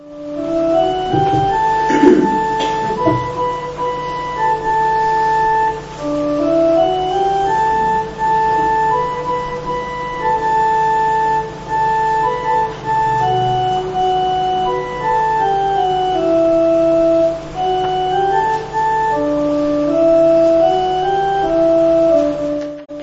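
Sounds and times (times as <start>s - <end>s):
hymn tune played on a keyboard-like instrument: 0.0s - 23.0s
low thumps: 0.8s - 3.9s.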